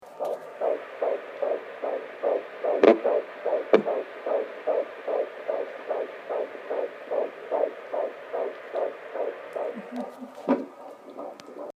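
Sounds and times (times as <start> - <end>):
baby beat: 0.0 - 11.7.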